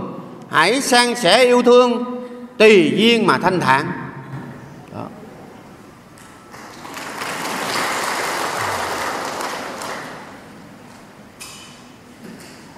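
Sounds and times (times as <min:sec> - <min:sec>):
speech: 0:00.5 - 0:04.0
audience applause at a Buddhist sermon: 0:06.5 - 0:10.6.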